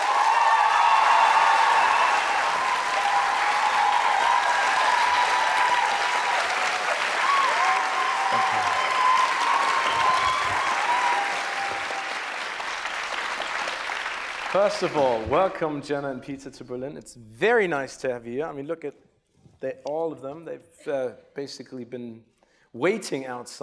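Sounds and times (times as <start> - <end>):
audience giving a big round of applause: 0.0 - 15.6
speech: 14.6 - 23.6.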